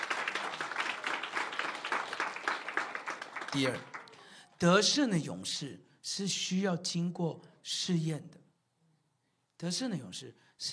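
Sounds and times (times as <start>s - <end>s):
audience clapping: 0.0s - 4.5s
speech: 3.5s - 3.9s, 4.6s - 8.4s, 9.6s - 10.7s.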